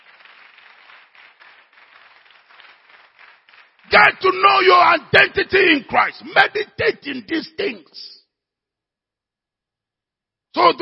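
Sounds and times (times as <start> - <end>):
audience hand clapping: 0.0 - 5.1
speech: 3.9 - 8.2, 10.6 - 10.7.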